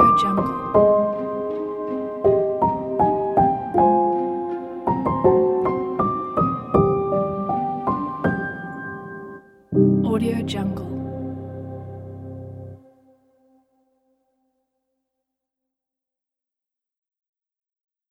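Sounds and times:
emotional piano music: 0:00.0 - 0:13.2.

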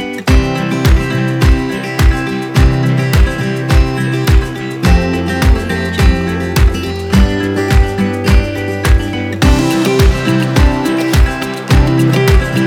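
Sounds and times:
folk music: 0:00.3 - 0:12.6.

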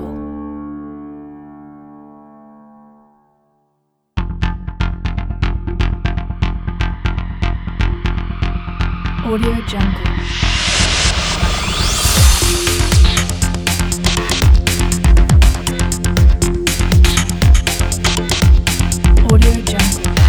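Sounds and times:
hard electronic cinematic music: 0:04.2 - 0:20.2.

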